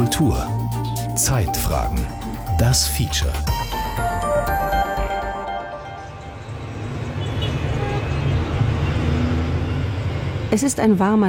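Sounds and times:
speech: 0:00.1 - 0:00.6, 0:01.2 - 0:04.6, 0:10.5 - 0:11.2
cars, bicycle and motorcycle taxis and minibuses in Nakuru centre: 0:05.6 - 0:11.2.

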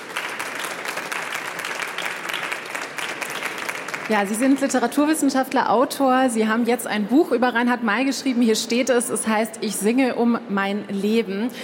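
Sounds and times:
studio audience applause: 0:00.0 - 0:05.2
speech: 0:04.1 - 0:11.6.

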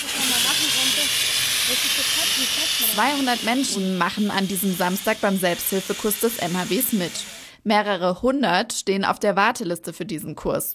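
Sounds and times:
water-filled fire extinguisher spraying: 0:00.0 - 0:07.6
speech: 0:02.0 - 0:10.7.

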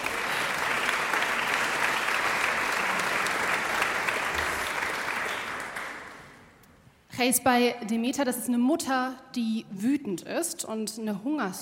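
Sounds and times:
applause: 0:00.0 - 0:06.6
speech: 0:07.2 - 0:11.6.

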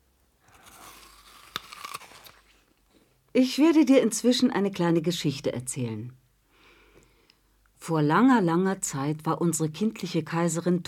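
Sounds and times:
someone biting into and eating fruit: 0:00.5 - 0:02.8
speech: 0:03.4 - 0:06.2, 0:07.9 - 0:10.8.

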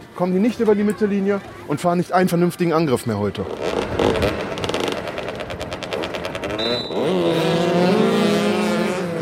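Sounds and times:
speech: 0:00.2 - 0:03.8
motorcycles racing over an asphalt football pitch: 0:03.4 - 0:09.2.

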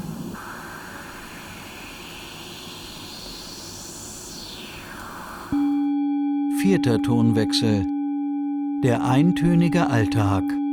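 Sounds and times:
noise through a resonant filter: 0:00.0 - 0:06.3
speech: 0:06.6 - 0:07.9, 0:08.8 - 0:10.6.

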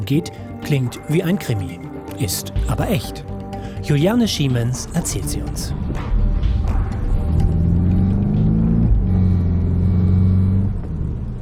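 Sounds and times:
speech: 0:00.1 - 0:06.2
small car speeding through the night: 0:05.4 - 0:11.4.

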